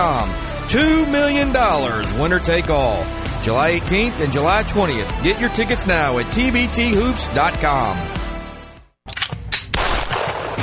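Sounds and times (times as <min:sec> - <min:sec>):
speech: 0:00.0 - 0:08.2
gunshots at a shooting range in Louisville: 0:09.6 - 0:10.6.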